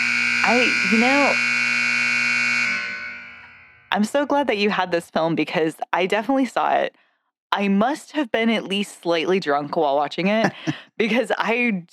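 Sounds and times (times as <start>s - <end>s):
timer buzzer: 0.0s - 3.9s
speech: 0.5s - 1.6s, 3.9s - 11.9s.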